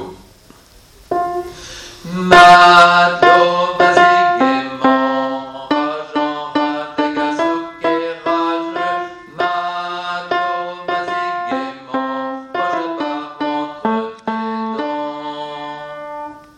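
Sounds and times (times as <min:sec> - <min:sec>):
song refrain: 0:01.1 - 0:16.5.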